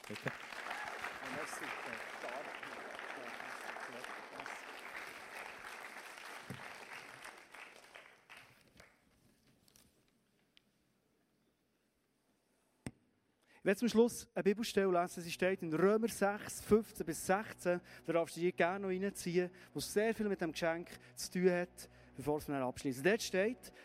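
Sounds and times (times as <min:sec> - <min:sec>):
audience applause: 0:00.0 - 0:09.0
speech: 0:00.1 - 0:00.5, 0:01.3 - 0:05.0, 0:13.6 - 0:23.8.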